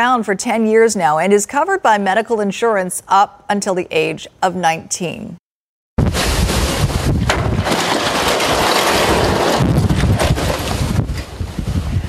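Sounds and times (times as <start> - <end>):
speech: 0.0 - 5.4
strong tropical storm winds: 6.0 - 12.0.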